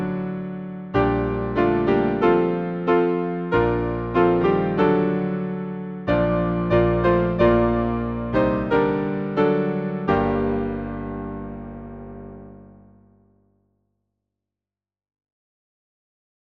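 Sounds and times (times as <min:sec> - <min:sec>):
hymn on piano: 0:00.0 - 0:13.0.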